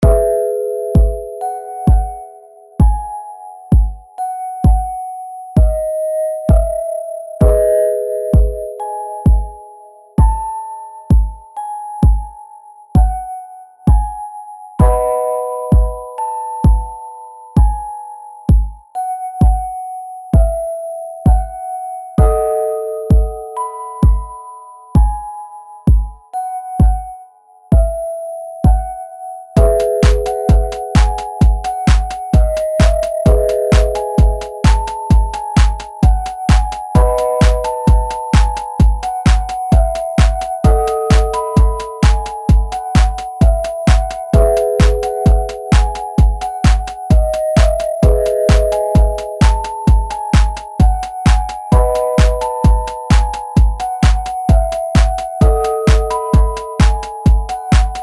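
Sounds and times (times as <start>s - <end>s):
little music box: 0.0s - 58.0s.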